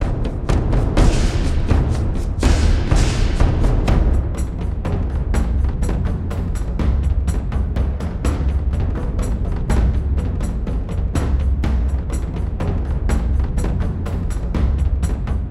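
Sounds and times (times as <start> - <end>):
drum loop: 0.0 - 15.4.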